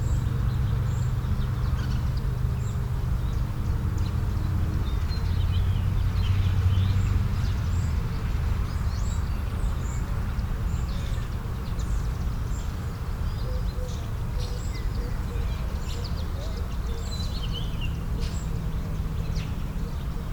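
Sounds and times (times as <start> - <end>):
suburban daytime birds singing: 0.0 - 20.3
suburban traffic: 0.0 - 20.3.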